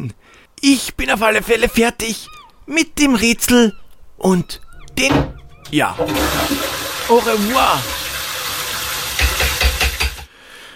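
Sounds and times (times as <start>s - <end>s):
speech: 0.0s - 8.0s
toilet flushing: 5.1s - 10.3s.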